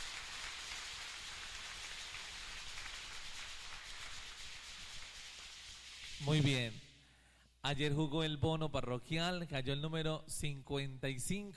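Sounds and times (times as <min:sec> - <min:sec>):
audience applause: 0:00.0 - 0:05.8
speech: 0:06.2 - 0:06.8, 0:07.6 - 0:11.5.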